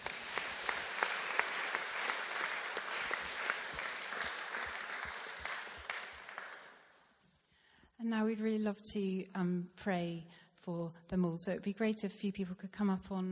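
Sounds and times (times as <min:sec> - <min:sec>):
audience applause: 0:00.0 - 0:07.0
speech: 0:08.2 - 0:13.2.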